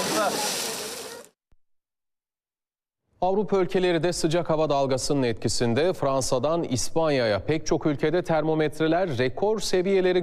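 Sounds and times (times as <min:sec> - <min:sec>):
swimmer splashing into Bosphorus sea water: 0:00.0 - 0:01.3
speech: 0:00.2 - 0:00.6, 0:03.2 - 0:10.2.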